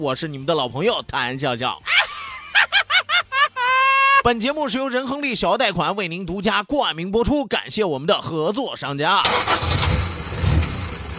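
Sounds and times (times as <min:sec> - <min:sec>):
speech: 0:00.0 - 0:02.0, 0:04.2 - 0:09.8
laughter: 0:01.8 - 0:04.2
car engine starting and idling: 0:09.2 - 0:11.1.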